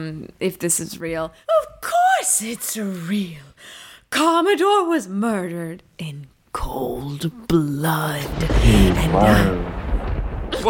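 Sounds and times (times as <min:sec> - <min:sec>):
speech: 0:00.0 - 0:09.8
thunder: 0:08.2 - 0:10.6.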